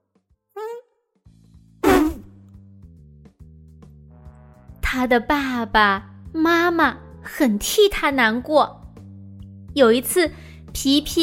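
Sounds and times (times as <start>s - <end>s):
farting: 1.8s - 2.3s
speech: 4.9s - 8.8s, 9.8s - 11.2s.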